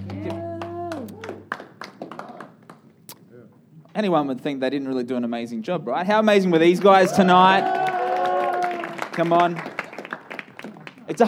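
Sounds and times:
scattered audience applause: 0.0 - 2.8, 6.6 - 11.2
speech: 4.0 - 7.8, 9.2 - 9.7, 11.1 - 11.2.

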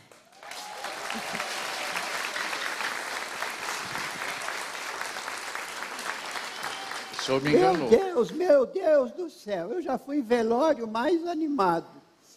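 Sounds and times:
audience applause: 0.0 - 8.1
speech: 1.2 - 1.5, 7.2 - 12.0.

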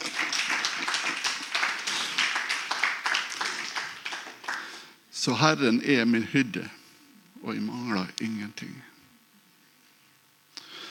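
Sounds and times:
audience clapping: 0.0 - 5.0
speech: 5.2 - 6.8, 7.4 - 8.9.

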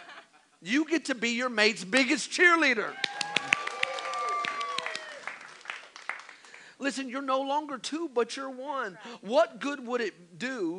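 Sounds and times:
speech: 0.6 - 3.2, 6.8 - 10.7
voices and whoops: 2.9 - 5.4
audience clapping: 2.9 - 6.8.

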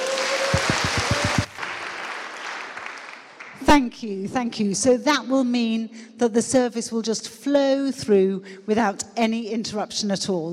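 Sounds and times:
audience applause: 0.0 - 3.6
low thumps: 0.5 - 1.6
speech: 3.7 - 10.5.

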